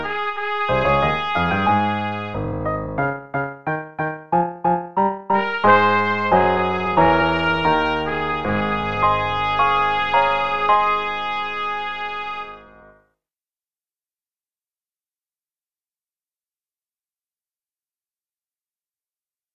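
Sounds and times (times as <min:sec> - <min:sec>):
play-along march music with both parts: 0:00.0 - 0:12.9.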